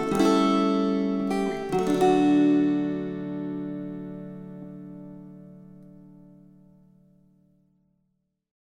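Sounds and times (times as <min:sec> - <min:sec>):
string choir: 0:00.0 - 0:04.8.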